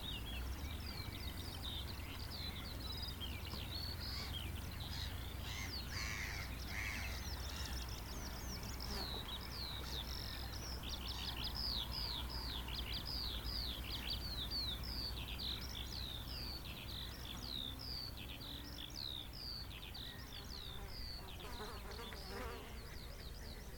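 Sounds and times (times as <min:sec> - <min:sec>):
birds chirping around Rye: 0:00.0 - 0:23.7
crow-like caws: 0:05.5 - 0:07.1.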